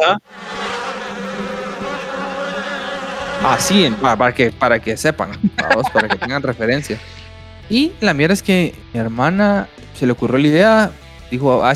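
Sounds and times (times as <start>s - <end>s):
speech: 0.0s - 0.5s, 3.4s - 11.7s
swarm of bees buzzing: 0.2s - 4.2s
laughter: 5.3s - 7.0s.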